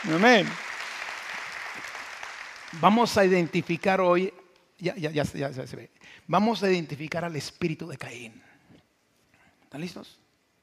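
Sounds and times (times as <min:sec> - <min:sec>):
speech: 0:00.0 - 0:00.6, 0:02.7 - 0:08.5, 0:09.7 - 0:10.2
crowd clapping: 0:00.0 - 0:04.1.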